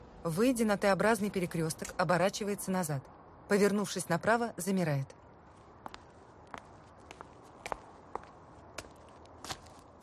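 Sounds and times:
speech: 0.2s - 5.2s
footsteps of a person walking along a street: 5.4s - 10.0s.

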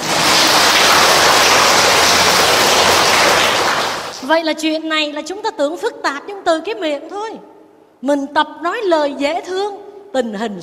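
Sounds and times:
audience applause: 0.0s - 4.2s
speech: 4.3s - 10.6s.

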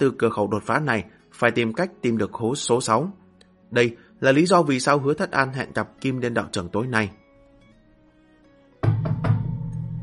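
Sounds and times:
speech: 0.0s - 7.2s
knocking on a door: 8.8s - 9.8s.

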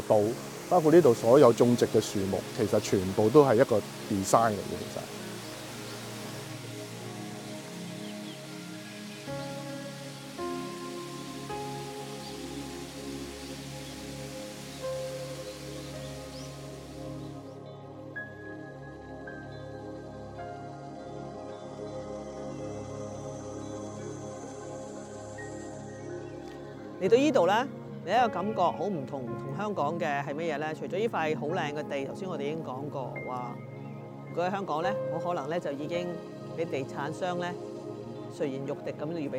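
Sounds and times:
artificial waterfall flowing water: 0.0s - 17.5s
speech: 0.1s - 5.2s, 27.1s - 33.7s, 34.3s - 37.7s, 38.4s - 39.3s.

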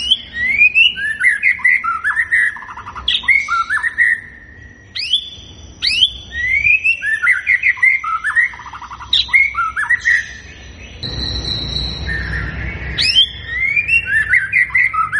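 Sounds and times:
white-rumped shama singing fluty whistles and warbling phrases: 0.0s - 2.6s, 3.2s - 15.1s.

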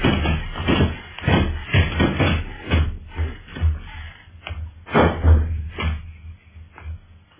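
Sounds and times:
suite door being battered and broken down: 0.0s - 4.0s, 4.8s - 6.1s
rattling and scuffling: 0.0s - 6.1s.

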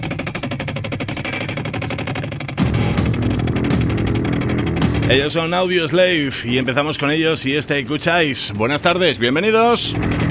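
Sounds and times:
motorcycle engine trying to start: 0.0s - 5.0s
speech: 5.1s - 10.2s.

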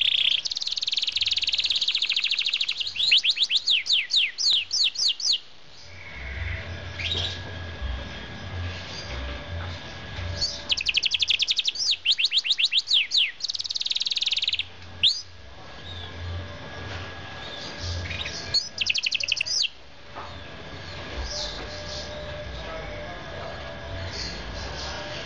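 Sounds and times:
bird chirping: 0.0s - 7.5s, 10.3s - 16.2s, 17.4s - 22.9s
low background noise: 0.0s - 25.2s.

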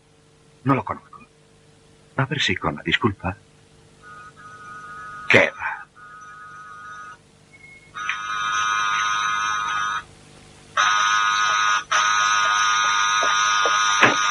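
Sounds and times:
speech: 0.6s - 1.1s, 2.2s - 3.4s, 5.3s - 5.8s
doorbell buzzer ringing: 4.0s - 7.2s, 7.9s - 10.1s, 10.8s - 14.2s.

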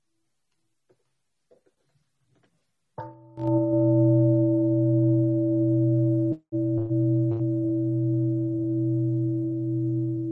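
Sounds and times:
Buddhist temple bell being struck: 3.0s - 10.2s.

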